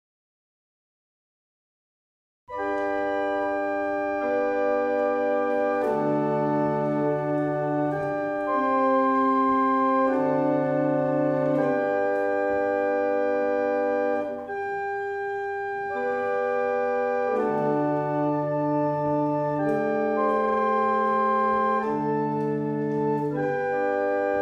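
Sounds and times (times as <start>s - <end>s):
German hymn on barrel organ: 2.5s - 24.4s.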